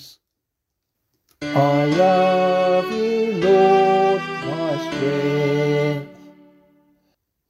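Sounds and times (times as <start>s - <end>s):
vocal psalm singing: 1.4s - 6.8s.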